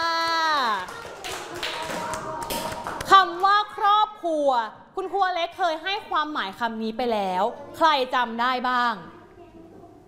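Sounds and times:
children clapping: 0:00.1 - 0:03.6
speech: 0:04.4 - 0:09.1.

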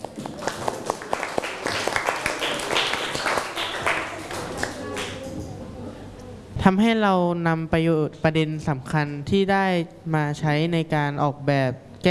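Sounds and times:
classroom clapping for a group: 0:00.0 - 0:05.3
speech: 0:06.6 - 0:12.1.

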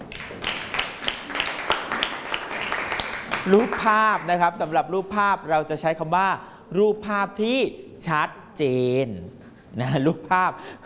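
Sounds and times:
group of students clapping in a classroom: 0:00.0 - 0:04.3
speech: 0:03.4 - 0:10.8.

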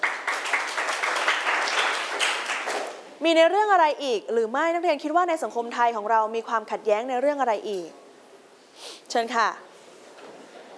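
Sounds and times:
group of students applauding: 0:00.0 - 0:03.0
speech: 0:03.2 - 0:08.0, 0:09.1 - 0:09.7.

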